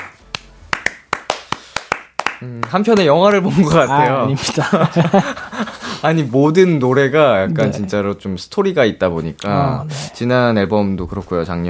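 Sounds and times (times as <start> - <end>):
clapping: 0.0 - 3.1
speech: 2.4 - 11.6
laughter: 3.5 - 6.0.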